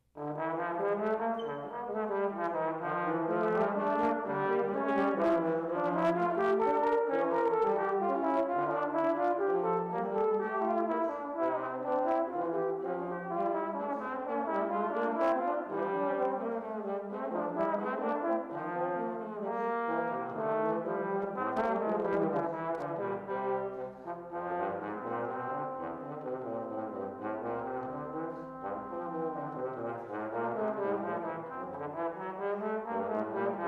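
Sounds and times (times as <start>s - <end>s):
trombone: 0.1s - 33.6s.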